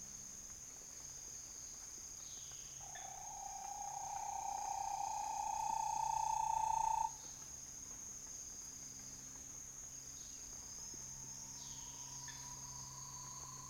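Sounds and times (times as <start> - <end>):
Bahia tapaculo calling: 2.8 - 7.1.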